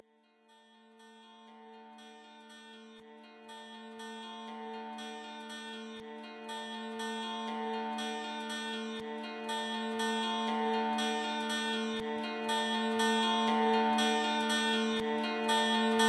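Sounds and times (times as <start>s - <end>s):
mid section music: 0.1s - 16.0s.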